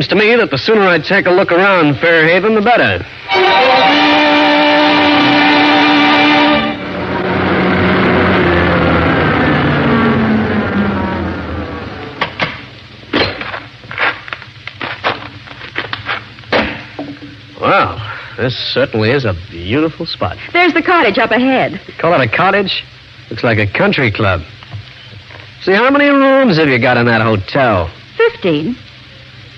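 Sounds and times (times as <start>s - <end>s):
speech: 0.0s - 4.2s, 17.7s - 24.6s, 25.6s - 28.8s
car engine starting and driving: 3.1s - 13.1s.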